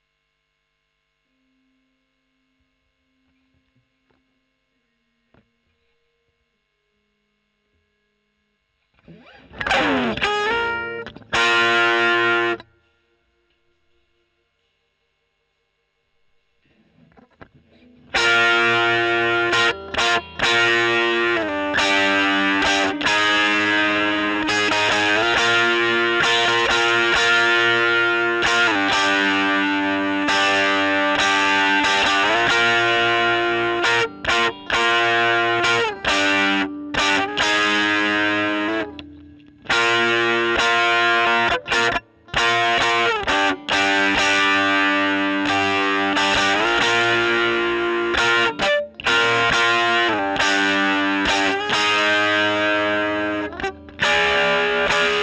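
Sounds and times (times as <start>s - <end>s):
overdriven electric guitar recorded with Gefell: 8.9s - 13.6s, 16.6s - 55.2s.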